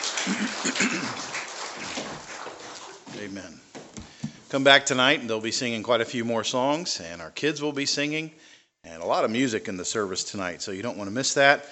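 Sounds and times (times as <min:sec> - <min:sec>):
applause: 0:00.0 - 0:03.2
speech: 0:00.2 - 0:02.0, 0:03.2 - 0:03.7, 0:04.5 - 0:11.7.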